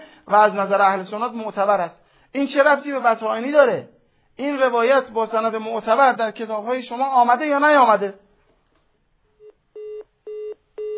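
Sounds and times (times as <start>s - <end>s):
speech: 0.3s - 8.2s
telephone busy tone after a caller's line is cut off: 9.8s - 10.9s.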